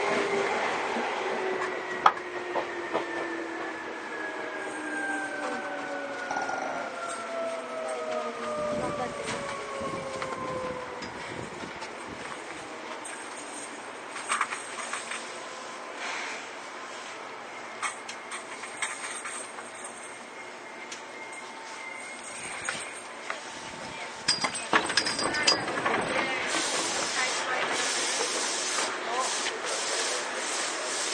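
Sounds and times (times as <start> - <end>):
Seibu old 2000-series train rumble: 0.0 - 31.1
wheels clacking and knocking: 24.3 - 27.7.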